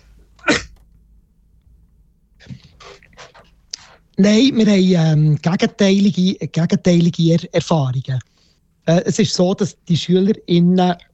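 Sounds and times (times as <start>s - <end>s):
cough: 0.4s - 0.8s
speech: 4.2s - 11.1s.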